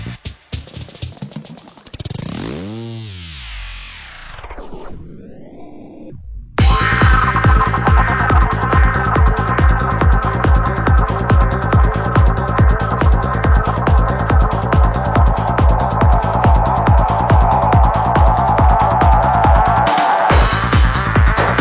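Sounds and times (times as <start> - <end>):
acid echo: 3.2 - 21.6.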